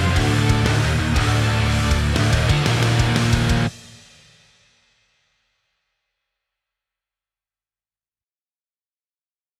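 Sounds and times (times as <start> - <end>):
orchestral rock music: 0.0 - 3.8.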